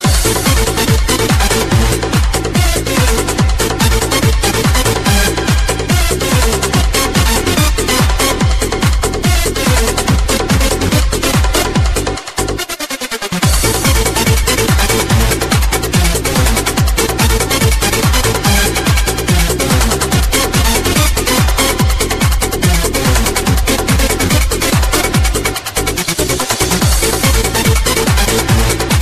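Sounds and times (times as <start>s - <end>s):
groove music: 0.0s - 29.0s.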